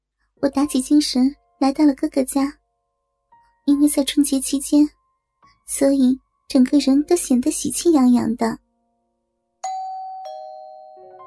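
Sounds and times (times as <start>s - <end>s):
speech: 0.4s - 2.6s, 3.7s - 5.0s, 5.7s - 8.6s
doorbell chiming ding-dong at the front door of a house: 9.6s - 11.2s.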